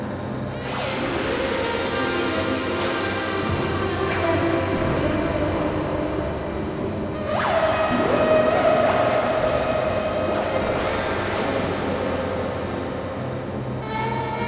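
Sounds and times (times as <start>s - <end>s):
ensemble playing: 0.0s - 14.4s.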